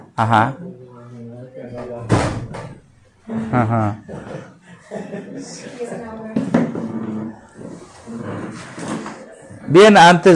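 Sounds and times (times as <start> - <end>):
speech: 0.2 - 0.6, 3.5 - 6.1, 9.7 - 10.3
door being closed: 2.0 - 2.8
laughter: 3.2 - 6.2.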